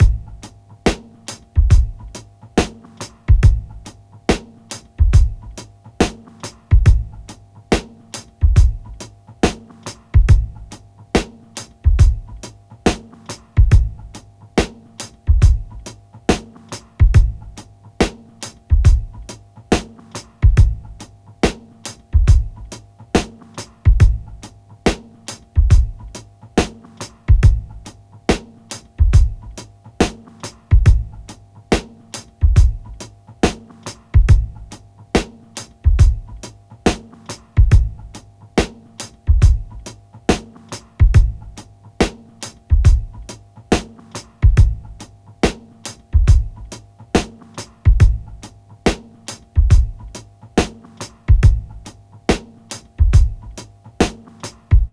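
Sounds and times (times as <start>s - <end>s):
slow breakbeat: 0.0s - 54.9s.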